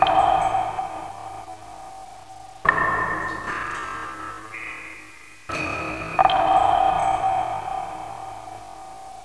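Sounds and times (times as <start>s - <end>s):
water dripping: 0.0s - 9.2s.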